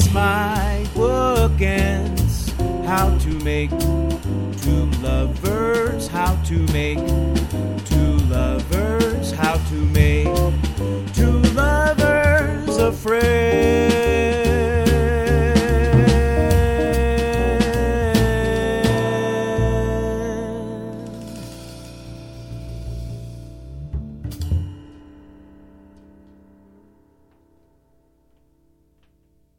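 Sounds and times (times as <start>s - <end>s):
jazz band playing: 0.0s - 25.3s.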